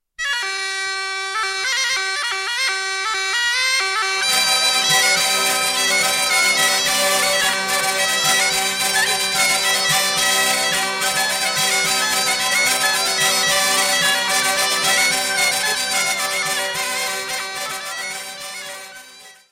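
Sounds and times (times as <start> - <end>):
Auvergne folk dance music from France: 0.3 - 19.5.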